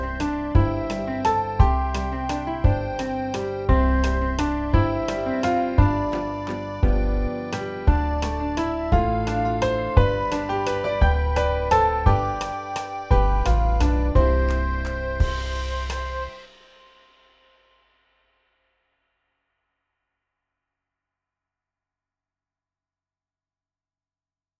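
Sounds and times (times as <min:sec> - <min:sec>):
waltz folk song backing track: 0:00.0 - 0:16.4.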